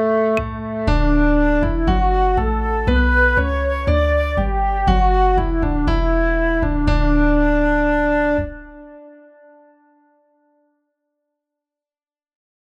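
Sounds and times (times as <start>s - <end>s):
national anthem music: 0.0s - 9.8s.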